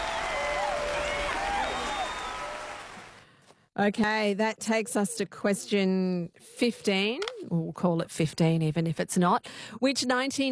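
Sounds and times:
applause: 0:00.0 - 0:03.3
speech: 0:03.8 - 0:10.5.

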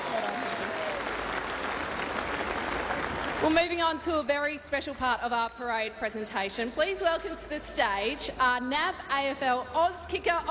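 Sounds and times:
audience applause: 0:00.0 - 0:03.7
speech: 0:03.4 - 0:10.4.

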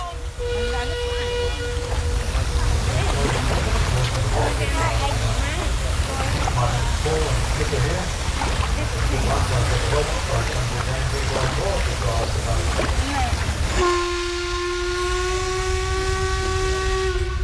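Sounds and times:
low rumble: 0:00.0 - 0:17.4
water wash of a large river: 0:00.0 - 0:17.4.

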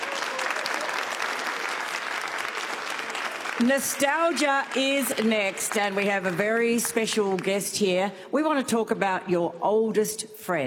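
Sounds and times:
audience applause: 0:00.0 - 0:07.4
speech: 0:03.6 - 0:10.6.

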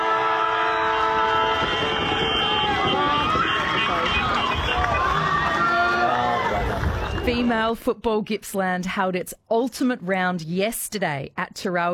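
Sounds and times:
final siren at football grand final: 0:00.0 - 0:07.4
speech: 0:07.3 - 0:11.9.

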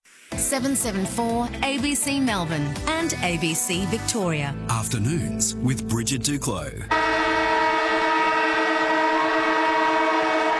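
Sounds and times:
speech: 0:00.5 - 0:07.2
loud siren blaring: 0:06.9 - 0:10.5.

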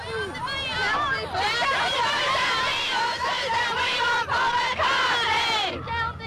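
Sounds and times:
crowd of young fans chanting: 0:00.4 - 0:06.2.

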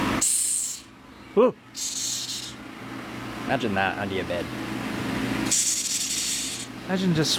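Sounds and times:
Madagascar hissing cockroach hissing: 0:00.2 - 0:00.9, 0:01.8 - 0:02.6, 0:05.4 - 0:06.7
speech: 0:01.4 - 0:02.2, 0:03.4 - 0:04.9, 0:06.9 - 0:07.3.

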